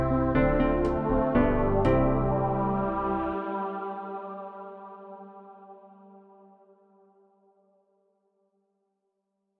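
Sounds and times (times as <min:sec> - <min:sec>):
instrumental music: 0:00.0 - 0:03.8.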